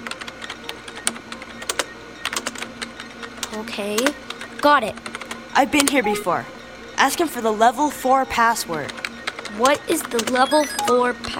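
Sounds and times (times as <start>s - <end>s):
rapid typing on a computer keyboard: 0.0s - 6.0s, 8.8s - 11.0s
speech: 3.5s - 11.3s.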